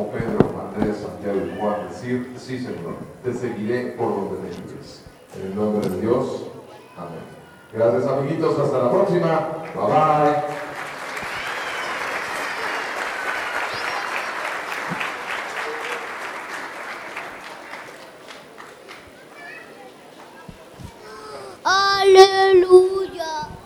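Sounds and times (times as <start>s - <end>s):
speech: 0.0s - 10.7s
audience applause: 9.6s - 20.3s
children's voices and chatter: 18.9s - 23.6s.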